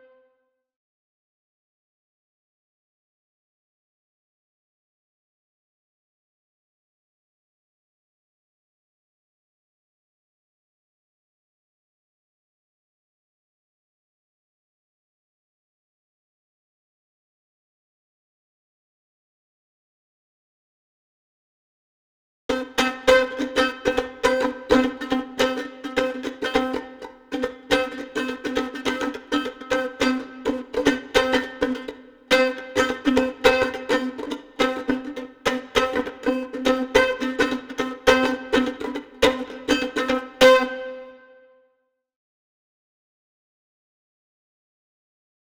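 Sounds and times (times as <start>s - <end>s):
mandolin: 22.5s - 41.4s.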